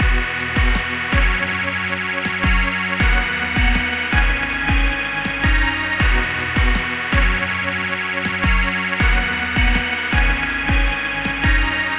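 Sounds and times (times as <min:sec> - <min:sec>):
backing music: 0:00.0 - 0:11.9.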